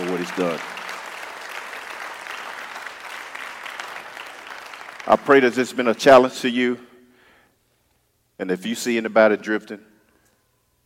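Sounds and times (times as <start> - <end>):
audience hand clapping: 0.0 - 6.0
speech: 0.2 - 0.8, 5.1 - 6.9, 8.4 - 9.9.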